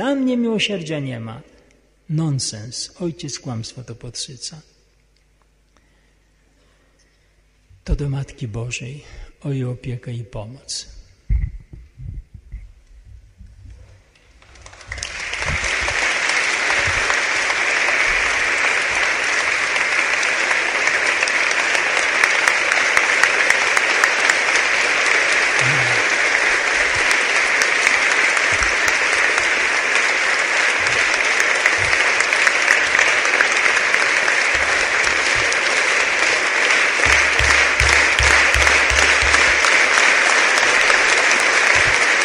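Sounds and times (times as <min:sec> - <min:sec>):
speech: 0:00.0 - 0:01.5, 0:02.1 - 0:04.7, 0:07.9 - 0:11.0
audience applause: 0:14.4 - 0:42.2.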